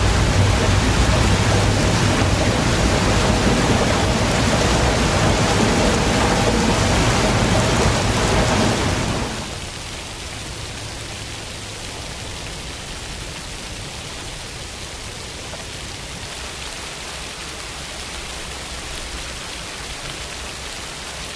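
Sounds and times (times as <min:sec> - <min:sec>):
rain: 0:00.0 - 0:21.3.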